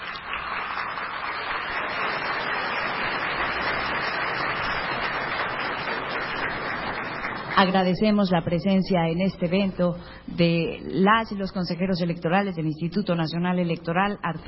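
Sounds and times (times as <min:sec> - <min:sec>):
audience applause: 0:00.0 - 0:07.8
speech: 0:07.6 - 0:14.4.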